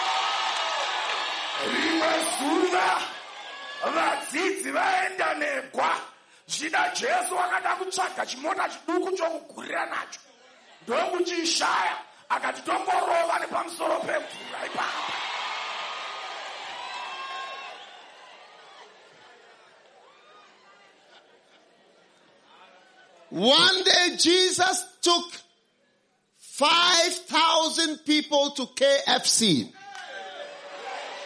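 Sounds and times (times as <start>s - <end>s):
crowd clapping: 0.0s - 3.9s, 14.3s - 20.0s
large crowd cheering and whooping: 0.0s - 5.4s, 10.6s - 23.9s, 29.8s - 31.2s
speech: 1.6s - 3.2s, 3.8s - 15.3s, 23.4s - 25.4s, 26.6s - 29.8s.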